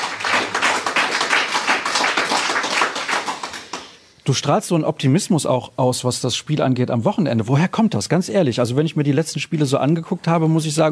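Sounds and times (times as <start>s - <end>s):
crowd applause: 0.0s - 4.0s
speech: 4.3s - 10.8s.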